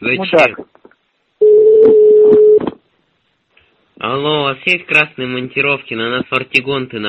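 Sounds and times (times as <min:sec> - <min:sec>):
speech: 0:00.0 - 0:00.8, 0:04.0 - 0:07.0
telephone dial tone: 0:01.4 - 0:02.6.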